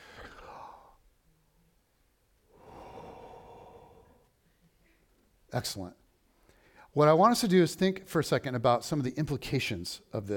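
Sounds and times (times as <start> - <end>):
group taking a deep breath together: 0.0 - 1.0, 2.5 - 5.1, 6.4 - 6.9
speech: 5.5 - 6.0, 6.9 - 10.3.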